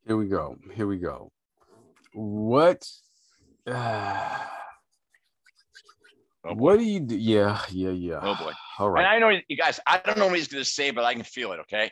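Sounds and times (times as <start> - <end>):
speech: 0.1 - 1.4, 2.1 - 4.5, 5.8 - 11.8
deep breath as two voiced sighs: 3.7 - 4.8.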